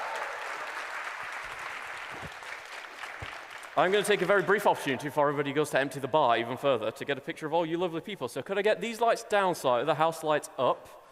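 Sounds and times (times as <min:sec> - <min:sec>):
crowd clapping: 0:00.0 - 0:04.8
speech: 0:03.8 - 0:11.0.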